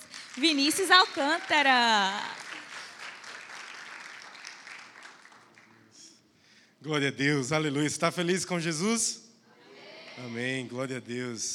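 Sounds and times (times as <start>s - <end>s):
audience applause: 0.0s - 5.9s
speech: 0.4s - 2.4s, 6.8s - 9.2s, 10.2s - 11.5s.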